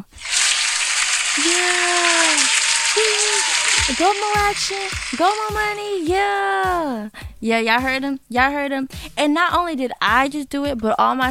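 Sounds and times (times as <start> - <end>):
applause: 0.2 - 5.8
speech: 1.4 - 2.0, 3.9 - 11.3.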